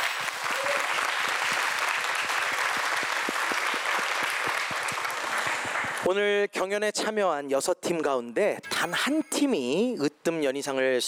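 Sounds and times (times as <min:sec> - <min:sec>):
audience applause: 0:00.0 - 0:06.1
speech: 0:06.1 - 0:11.0.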